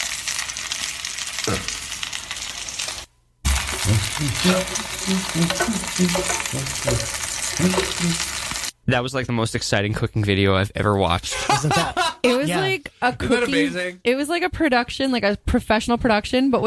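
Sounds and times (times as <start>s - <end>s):
chicken sizzling in a hot pan: 0.0s - 8.8s
speech: 3.9s - 16.6s
laughter: 11.3s - 13.9s.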